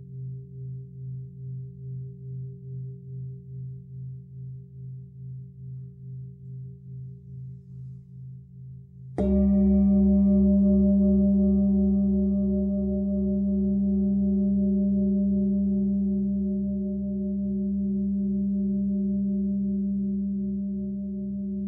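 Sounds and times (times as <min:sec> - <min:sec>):
Himalayan singing bowls ringing: 0:09.2 - 0:21.6.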